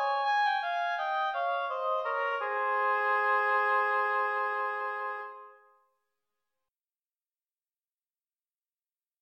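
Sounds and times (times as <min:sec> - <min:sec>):
oboe duet: 0:00.0 - 0:05.8.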